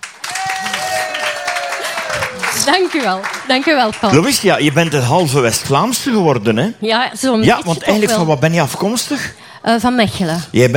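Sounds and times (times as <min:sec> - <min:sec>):
audience applause: 0:00.0 - 0:05.8
speech: 0:02.6 - 0:10.7.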